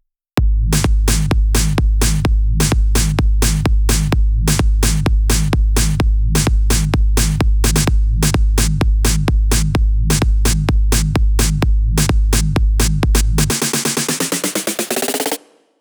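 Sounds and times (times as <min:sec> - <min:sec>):
full drums at 128 BPM: 0:00.4 - 0:15.6.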